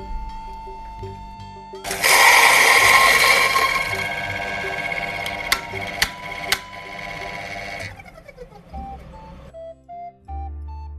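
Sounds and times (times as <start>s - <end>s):
coffee grinder grinding beans: 1.9s - 9.5s.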